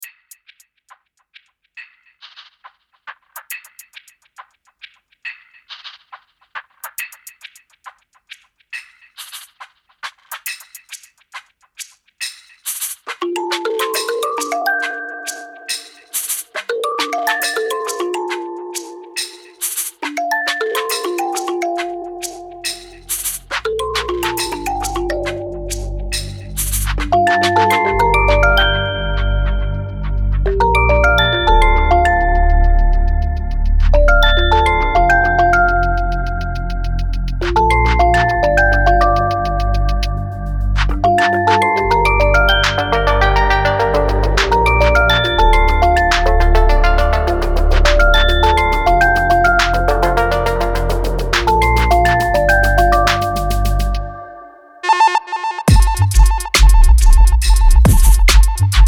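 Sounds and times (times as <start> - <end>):
instrumental music: 13.2 - 58.8.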